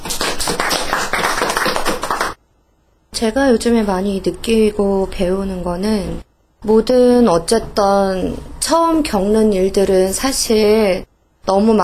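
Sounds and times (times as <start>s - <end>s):
audience applause: 0.0s - 2.4s
speech: 3.2s - 11.8s.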